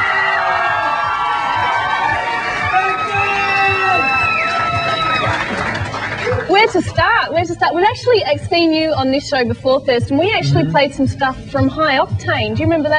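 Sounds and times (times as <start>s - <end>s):
audience applause: 0.0s - 6.8s
speech: 6.6s - 12.9s.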